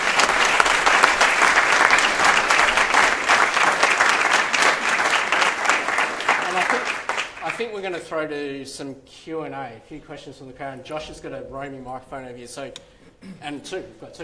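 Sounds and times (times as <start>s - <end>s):
audience clapping: 0.0s - 8.0s
speech: 7.6s - 14.2s.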